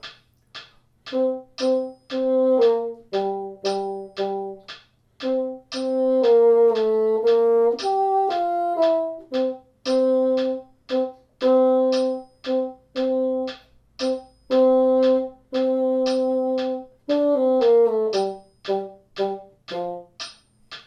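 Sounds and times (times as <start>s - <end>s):
symphony bassoon: 1.1s - 20.4s.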